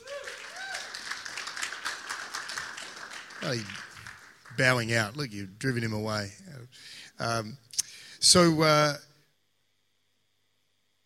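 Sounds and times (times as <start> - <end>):
person cheering: 0.0 - 1.1
crowd clapping: 0.0 - 5.3
speech: 3.4 - 3.8, 4.6 - 7.6, 8.2 - 9.1.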